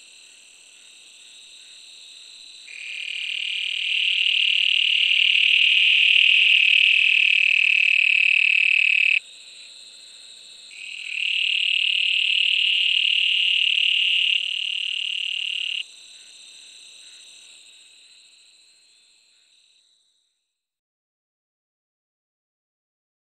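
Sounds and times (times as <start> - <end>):
Bufo granulosus toad: 2.7 - 9.2, 10.7 - 18.2.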